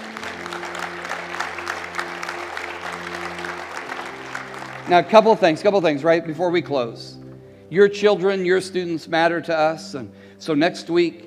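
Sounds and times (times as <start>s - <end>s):
audience applause: 0.0s - 5.7s
speech: 4.9s - 11.2s.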